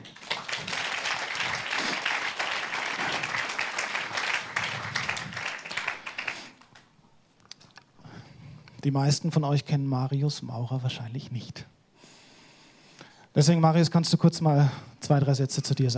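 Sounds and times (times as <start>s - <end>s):
crowd applause: 0.0s - 6.8s
speech: 8.8s - 11.8s, 13.4s - 15.9s.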